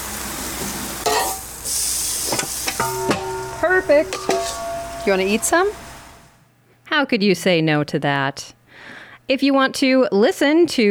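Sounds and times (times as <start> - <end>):
vegetables sizzling on a grill: 0.0 - 6.4
utensil clinking and scraping against metal: 2.3 - 6.2
speech: 3.8 - 4.4, 5.0 - 5.9, 6.9 - 10.8.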